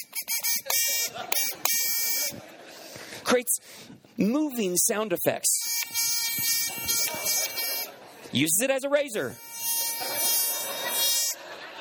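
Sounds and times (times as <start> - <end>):
game show buzzer: 0.0 - 2.4, 5.6 - 7.9, 9.3 - 11.5
laughter: 0.5 - 3.3, 7.2 - 8.4, 9.7 - 11.7
speech: 3.3 - 5.6, 8.3 - 9.5.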